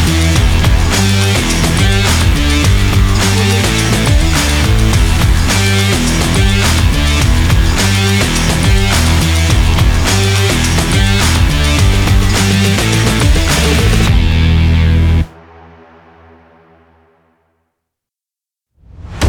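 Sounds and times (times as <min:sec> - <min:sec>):
extreme breakbeat: 0:00.0 - 0:14.9.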